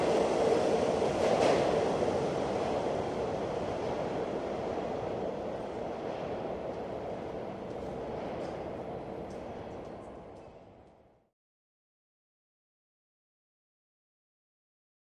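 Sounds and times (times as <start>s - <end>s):
subway train stopping: 0.0s - 11.3s.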